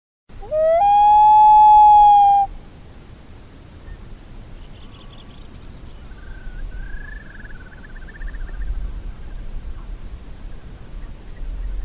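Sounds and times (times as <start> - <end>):
common loon wailing: 0.4 - 2.5.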